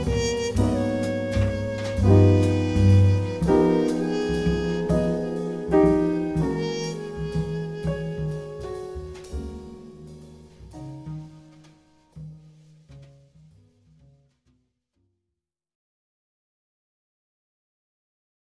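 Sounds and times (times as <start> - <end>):
waltz music: 0.0 - 11.5.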